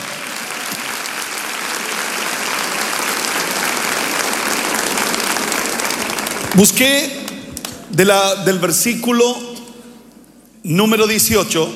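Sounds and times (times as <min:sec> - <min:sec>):
audience applause: 0:00.0 - 0:07.0
speech: 0:06.6 - 0:07.2, 0:07.9 - 0:09.5, 0:10.6 - 0:11.7.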